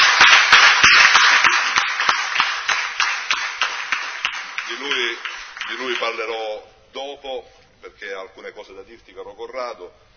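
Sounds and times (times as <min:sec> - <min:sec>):
audience applause: 0:00.0 - 0:06.2
speech: 0:05.7 - 0:10.1.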